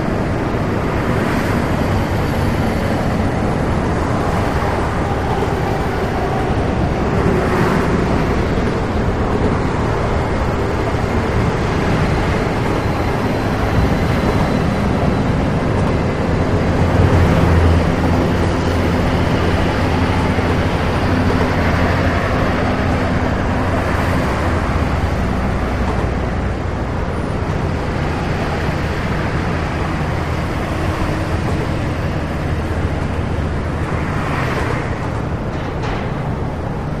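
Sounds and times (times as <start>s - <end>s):
highway traffic at a freeway overpass: 0.0s - 36.9s.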